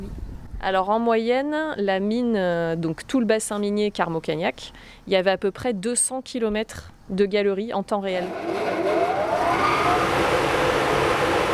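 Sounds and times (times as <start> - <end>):
speech: 0.6 - 8.9
mine ventilation fan running: 8.2 - 11.5.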